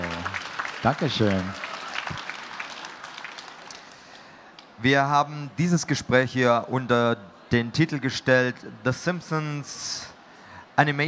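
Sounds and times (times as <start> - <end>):
audience applause: 0.0 - 4.3
speech: 0.8 - 1.6, 4.8 - 10.1, 10.8 - 11.0.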